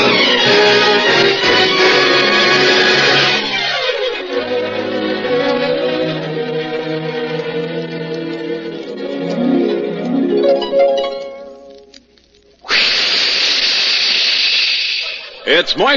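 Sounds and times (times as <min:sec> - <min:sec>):
rising tonal music: 0:00.0 - 0:12.1
hissing jet of moisture spray: 0:12.6 - 0:15.4.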